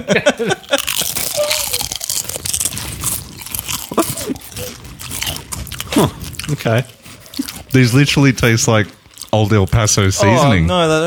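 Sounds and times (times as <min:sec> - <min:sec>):
people giggling and laughing: 0:00.0 - 0:01.0
speech: 0:00.0 - 0:01.5, 0:06.0 - 0:07.0, 0:07.7 - 0:11.0
several people crunching chips beside the microphones: 0:00.3 - 0:11.0.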